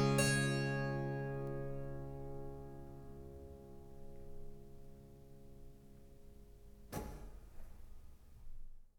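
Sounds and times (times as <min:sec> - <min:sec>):
harpsichords playing: 0:00.0 - 0:05.6.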